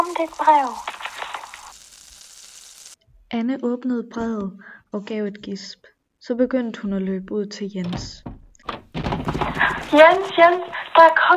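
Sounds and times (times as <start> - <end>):
speech: 0.0 - 0.9, 3.3 - 8.3, 9.3 - 11.3
food sizzling and crackling in a hot pan: 0.0 - 3.0.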